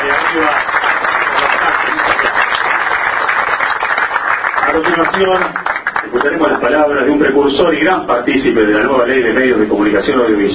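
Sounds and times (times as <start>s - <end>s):
applause at a subsidy-awarding event: 0.0s - 6.8s
speech: 0.1s - 0.7s, 4.8s - 10.5s.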